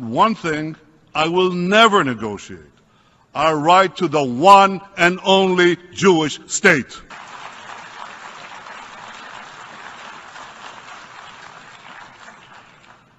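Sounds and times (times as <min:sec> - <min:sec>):
speech: 0:00.1 - 0:02.7, 0:03.4 - 0:07.2
sustained applause in an assembly hall for the Prime Minister of Israel: 0:07.1 - 0:13.1.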